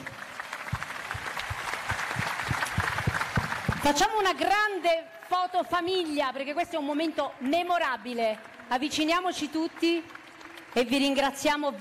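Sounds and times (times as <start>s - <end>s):
audience applause: 0.0s - 4.8s, 7.5s - 11.5s
speech: 3.9s - 10.2s, 10.8s - 11.7s.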